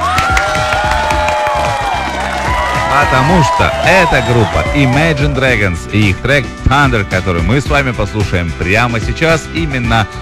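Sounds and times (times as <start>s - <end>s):
crowd applause and cheering: 0.0s - 6.3s
speech: 3.0s - 10.2s
whistle-like tones: 3.9s - 6.1s.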